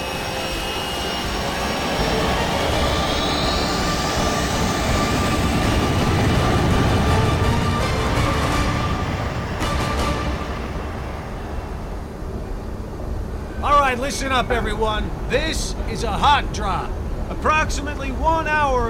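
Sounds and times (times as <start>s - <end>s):
faint rising whine: 0.0s - 16.0s
Vulture 7 aircraft engines roaring lifting off over an airstrip: 0.0s - 18.8s
speech: 14.0s - 18.8s.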